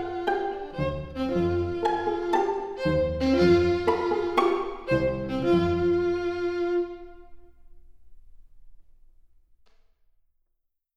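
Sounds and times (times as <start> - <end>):
string quartet playing: 0.0 - 7.4.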